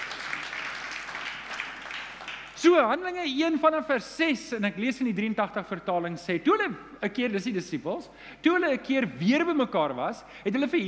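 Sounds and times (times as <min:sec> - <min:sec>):
audience hand clapping: 0:00.0 - 0:02.7
speech: 0:02.6 - 0:10.8.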